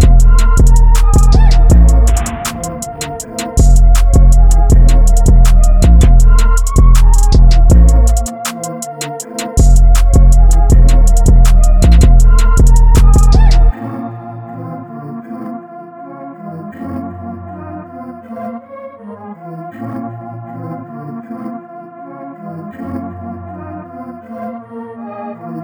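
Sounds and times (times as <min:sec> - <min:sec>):
dark type beat at 160 bpm: 0:00.0 - 0:14.6.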